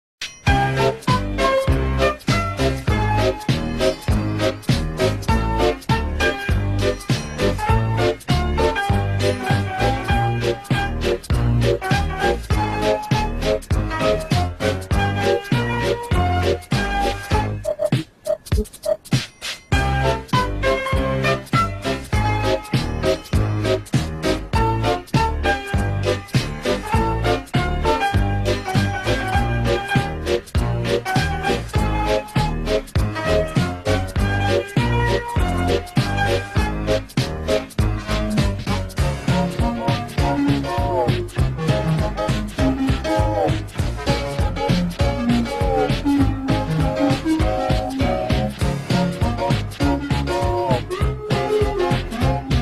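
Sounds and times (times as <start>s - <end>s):
theme song: 0.4s - 19.0s, 19.7s - 52.6s.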